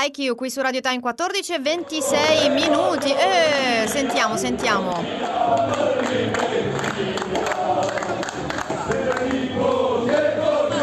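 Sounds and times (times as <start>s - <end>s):
speech: 0.0s - 7.1s
football fans chanting and shouting in a stadium: 1.7s - 10.8s
scattered claps: 5.0s - 10.3s.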